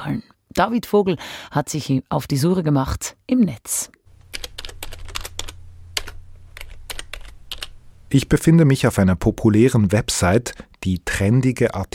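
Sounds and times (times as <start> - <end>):
speech: 0.0 - 4.5, 8.1 - 11.9
low steady hum: 4.1 - 8.4
typing on a computer keyboard: 4.3 - 7.8.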